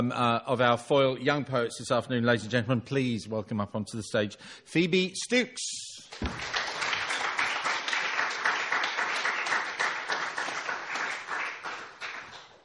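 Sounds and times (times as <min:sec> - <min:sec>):
speech: 0:00.0 - 0:06.6
audience clapping: 0:06.1 - 0:12.6.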